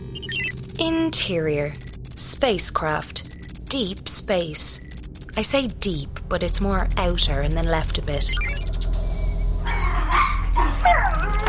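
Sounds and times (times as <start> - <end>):
low steady hum: 0.0 - 11.4
speech: 0.8 - 4.8, 5.4 - 8.6
alien puppy creature yipping and whimpering: 9.7 - 11.4.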